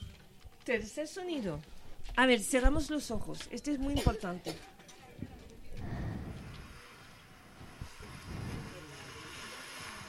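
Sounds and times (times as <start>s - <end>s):
speech: 0.7s - 4.7s
sea waves on a beach: 6.8s - 10.0s.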